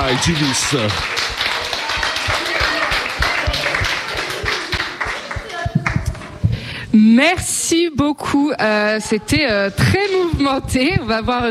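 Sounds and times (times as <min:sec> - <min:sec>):
audience applause: 0:00.0 - 0:06.2
speech: 0:00.1 - 0:01.2, 0:07.0 - 0:11.4.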